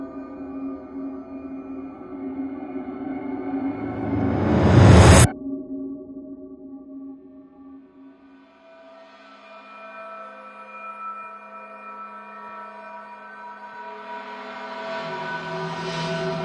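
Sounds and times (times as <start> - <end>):
synth pads: 0.2 - 5.3, 13.9 - 16.4.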